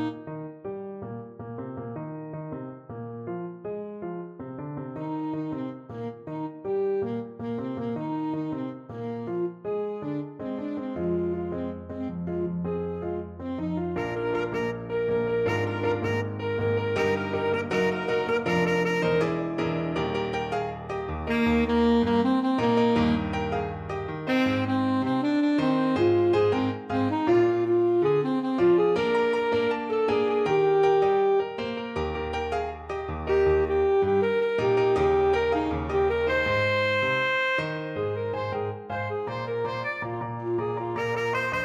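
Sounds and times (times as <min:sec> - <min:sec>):
saxophone: 0:00.0 - 0:00.8, 0:04.8 - 0:41.6
salsa music: 0:14.1 - 0:26.8, 0:31.7 - 0:40.2.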